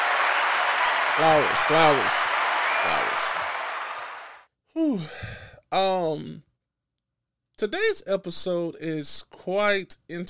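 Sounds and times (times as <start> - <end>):
person cheering: 0.0 - 4.3
clapping: 0.0 - 4.4
speech: 1.2 - 3.4, 4.8 - 6.5, 7.6 - 10.2.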